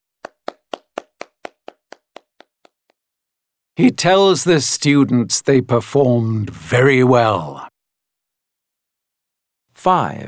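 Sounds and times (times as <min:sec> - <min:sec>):
hand clapping: 0:00.0 - 0:03.0
speech: 0:03.8 - 0:07.7, 0:09.8 - 0:10.2.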